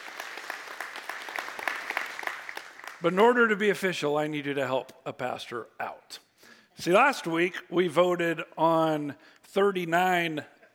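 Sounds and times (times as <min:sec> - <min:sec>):
audience applauding: 0:00.0 - 0:03.1
speech: 0:03.0 - 0:10.6.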